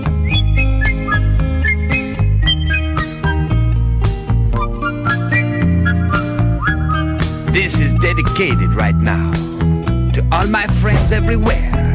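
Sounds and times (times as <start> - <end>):
person whistling: 0.0 - 3.6, 4.5 - 9.9
speech: 8.4 - 9.5, 10.3 - 11.8.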